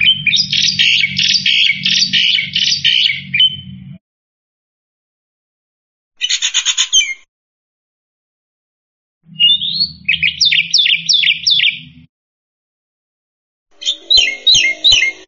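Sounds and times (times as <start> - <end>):
black-winged myna chirping: 0.0 - 4.0, 6.2 - 7.3, 9.3 - 12.1, 13.7 - 15.2.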